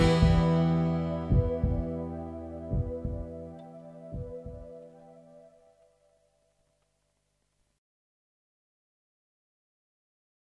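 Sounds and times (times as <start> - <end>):
jingle with heartbeat: 0.0 - 4.8.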